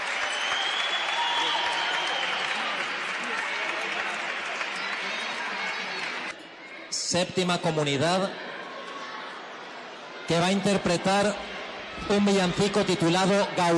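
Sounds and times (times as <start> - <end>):
applause: 0.0 - 6.4
speech: 7.1 - 8.5, 10.3 - 13.7.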